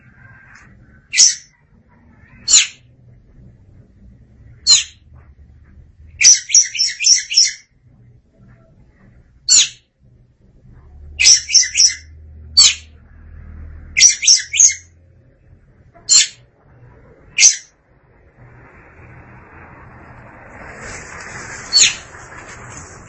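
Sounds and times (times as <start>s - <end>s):
faint low rumble: 0.0s - 6.2s, 7.6s - 11.2s, 14.9s - 23.0s
Oriental magpie-robin giving harsh rasping notes: 6.2s - 7.6s, 11.2s - 12.9s, 14.0s - 14.9s, 17.3s - 17.7s, 21.6s - 22.1s.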